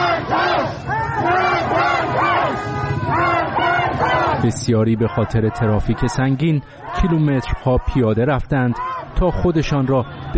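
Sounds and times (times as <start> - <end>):
huge crowd of mourners gathering, chanting: 0.0 - 10.3
speech: 4.4 - 10.3.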